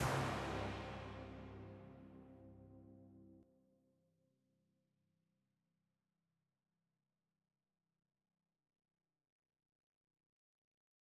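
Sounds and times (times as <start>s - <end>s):
drum hit: 0.0s - 1.9s.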